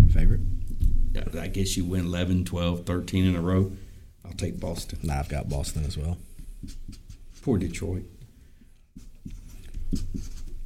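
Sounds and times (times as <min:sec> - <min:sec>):
speech: 0:01.2 - 0:08.2
pen writing on paper: 0:09.0 - 0:10.6.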